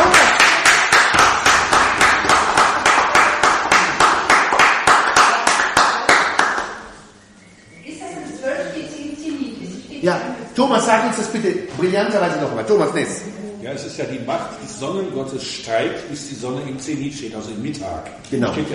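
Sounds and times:
crowd clapping rhythmically: 0.0s - 7.0s
speech: 10.8s - 18.7s.

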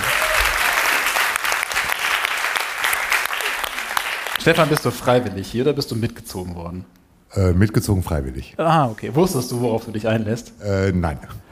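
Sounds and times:
audience applause: 0.0s - 5.2s
speech: 4.4s - 11.5s.

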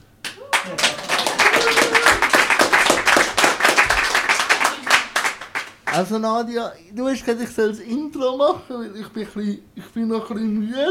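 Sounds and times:
live audience clapping and cheering: 0.2s - 6.1s
speech: 6.0s - 10.8s.

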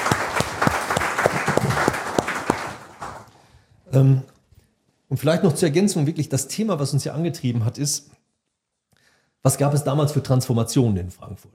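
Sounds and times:
audience applause: 0.0s - 3.3s
speech: 3.9s - 4.3s, 5.1s - 8.2s, 9.4s - 11.5s.

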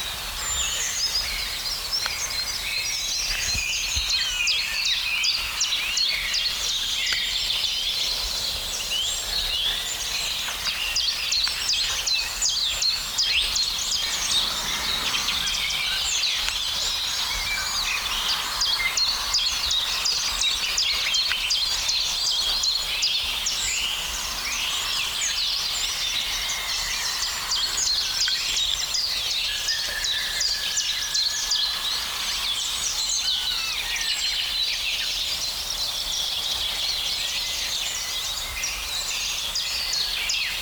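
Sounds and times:
chorus of high bright bird chirps and twittering phrases: 0.0s - 40.6s
blackbird singing: 0.4s - 40.6s.

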